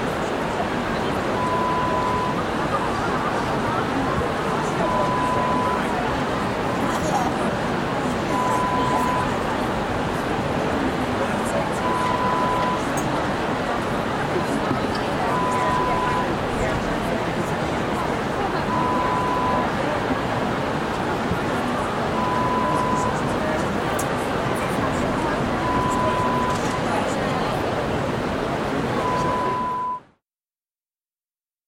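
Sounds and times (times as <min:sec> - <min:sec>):
convention ambience: 0:00.0 - 0:30.0.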